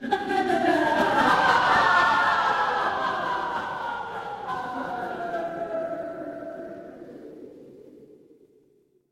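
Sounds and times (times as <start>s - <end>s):
crowd laughing: 0.0s - 7.0s.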